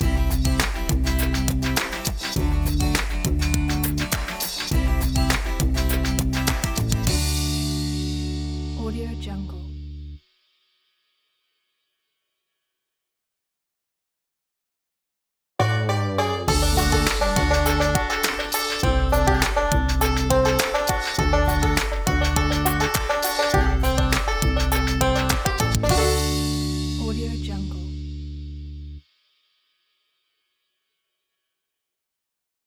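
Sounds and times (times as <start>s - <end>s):
funky bluegrass logo jingle: 0.0s - 8.8s, 15.6s - 27.8s.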